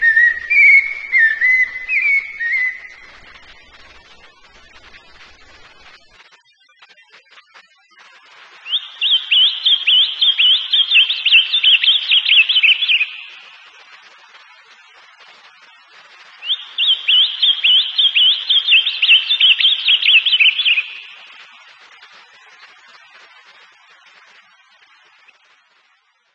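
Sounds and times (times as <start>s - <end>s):
bird singing: 0.0s - 3.5s, 8.6s - 13.6s, 16.4s - 21.4s.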